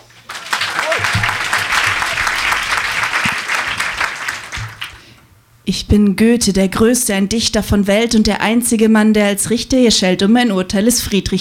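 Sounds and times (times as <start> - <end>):
audience clapping: 0.0 - 5.2
speech: 5.7 - 11.4.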